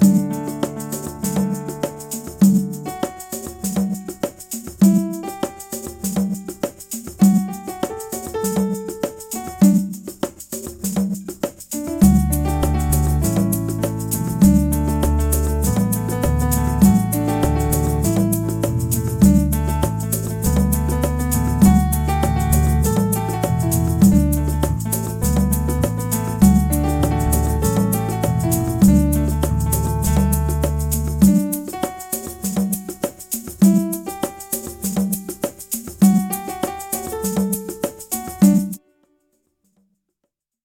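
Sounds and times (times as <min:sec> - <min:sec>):
rhythmic piano played on a pad controller: 0:00.0 - 0:38.9.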